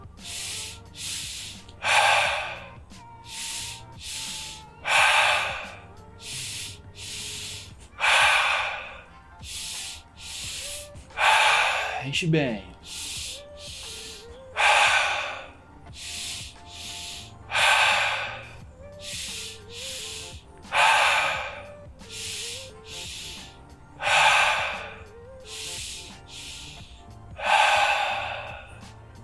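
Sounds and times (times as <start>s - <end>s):
long hissing exhales: 0.0s - 12.1s, 12.8s - 29.2s
deep breathing during a breathing exercise: 0.0s - 29.2s
speech: 12.1s - 13.0s.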